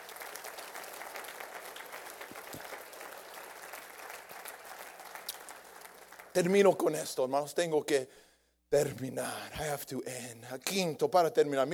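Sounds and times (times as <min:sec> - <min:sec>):
audience applause: 0:00.0 - 0:06.5
speech: 0:06.4 - 0:11.7.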